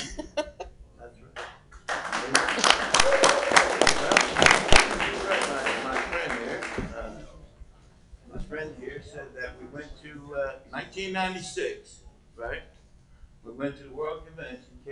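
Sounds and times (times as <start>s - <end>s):
audience clapping: 1.4s - 7.0s
speech: 11.0s - 12.7s, 13.5s - 14.9s.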